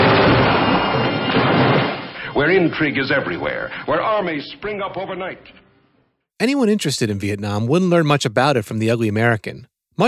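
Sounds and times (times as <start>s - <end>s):
gunfire from a film trailer: 0.0s - 2.2s
speech: 2.4s - 5.6s, 6.4s - 10.0s.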